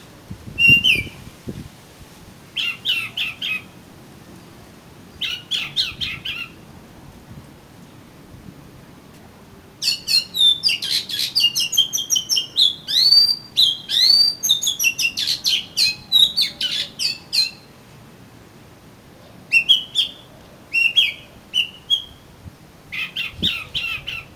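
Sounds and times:
Oriental magpie-robin singing: 0.6s - 1.2s, 2.6s - 3.8s, 5.2s - 6.6s, 9.8s - 17.8s, 19.5s - 22.3s, 22.9s - 24.3s.

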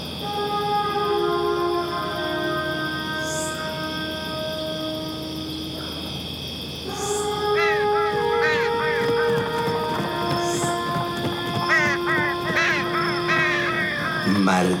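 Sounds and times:
steady sustained drone: 0.0s - 14.7s
large bird calling: 6.7s - 14.7s.

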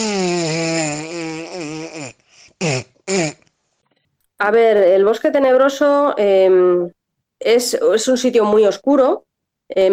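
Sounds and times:
person imitating farting with raspberry sounds: 0.0s - 3.5s
speech: 4.4s - 9.9s.

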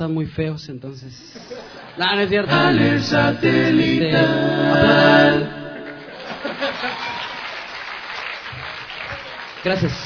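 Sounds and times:
speech: 0.0s - 5.6s, 9.6s - 10.0s
laughter: 1.4s - 3.0s, 5.7s - 7.4s
concert audience applauding a music group: 5.8s - 10.0s.

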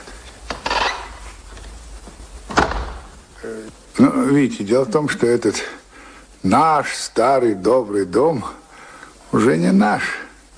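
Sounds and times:
kitchen door being closed: 0.4s - 1.8s, 2.4s - 3.2s
speech: 3.5s - 5.8s, 6.4s - 8.6s, 9.3s - 10.2s.

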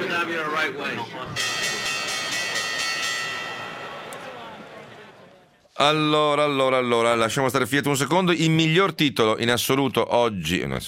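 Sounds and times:
speech: 0.2s - 1.6s, 5.8s - 10.8s
stock exchange opening bell ringing: 1.4s - 4.1s.

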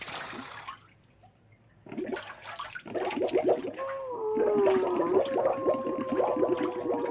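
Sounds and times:
bathwater splashing and sloshing in a bathtub: 0.0s - 1.0s, 1.9s - 7.0s
churning gurgle of diving under bathtub water: 3.0s - 7.0s
wavering low tone: 3.6s - 7.0s.

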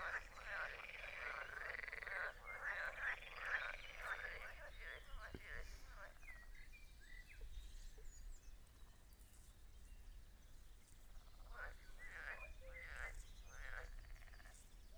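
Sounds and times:
frog chorus croaking at a castle: 0.0s - 6.5s, 11.3s - 14.6s.

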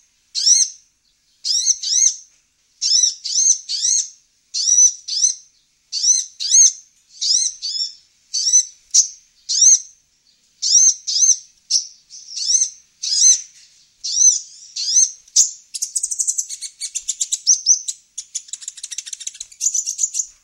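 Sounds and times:
female Van Hasselt's sunbird singing: 0.0s - 20.4s.

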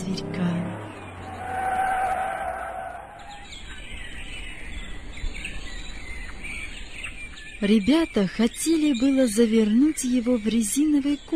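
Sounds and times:
speech: 0.1s - 0.5s, 7.6s - 11.3s
car braking to a stop with high-pitched squeal: 0.8s - 3.4s
scattered chirps: 3.1s - 11.3s.

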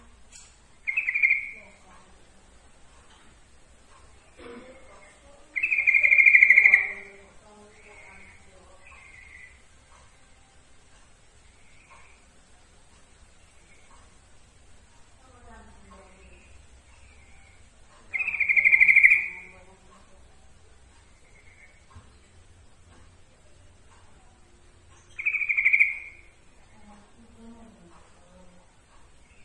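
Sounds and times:
yellow-vented bulbul giving bright notes: 0.8s - 1.9s, 3.9s - 9.6s, 15.9s - 19.8s, 24.9s - 27.0s.

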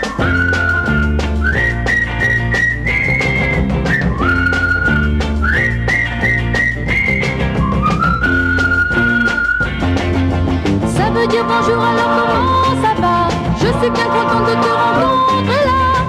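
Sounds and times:
boy whistling a call tune to hail a friend: 0.0s - 10.1s
instrumental backing with bass and regular rhythm: 0.0s - 16.0s.

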